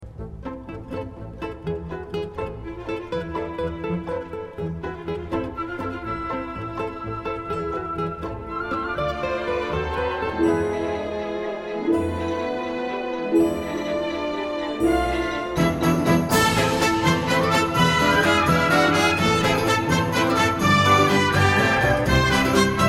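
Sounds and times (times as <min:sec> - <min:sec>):
flamenco music: 0:00.2 - 0:22.8.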